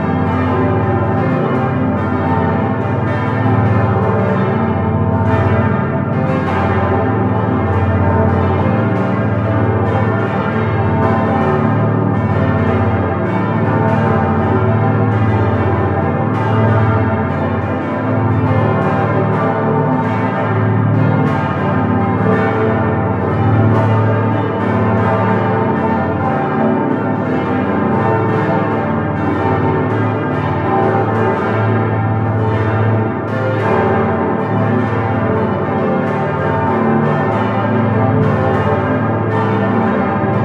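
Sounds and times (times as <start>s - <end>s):
full peal of parish church bells: 0.0s - 40.4s.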